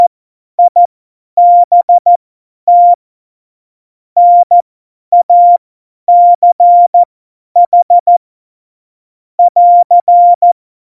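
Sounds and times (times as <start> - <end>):
CW Morse code at tempo 70: 1.4 - 3.0, 4.2 - 4.6, 5.2 - 8.2, 9.4 - 10.6.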